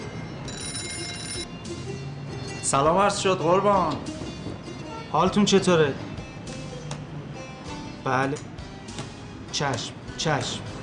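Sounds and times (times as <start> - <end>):
telephone ringing with electronic trill: 0.4 - 1.5
speech: 2.7 - 4.2, 5.1 - 6.1, 8.0 - 8.5, 9.6 - 10.7.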